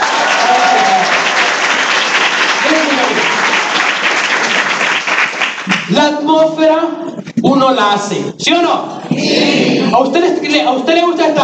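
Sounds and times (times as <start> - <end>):
audience applause: 0.0 - 6.0
speech: 6.0 - 11.4.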